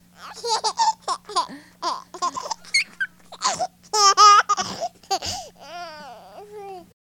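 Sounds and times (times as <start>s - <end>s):
person laughing: 0.4s - 5.5s.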